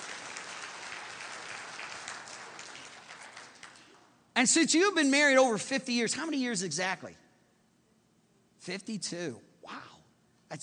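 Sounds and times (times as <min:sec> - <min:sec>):
audience applause: 0:00.0 - 0:04.0
speech: 0:04.4 - 0:07.2, 0:08.7 - 0:09.8.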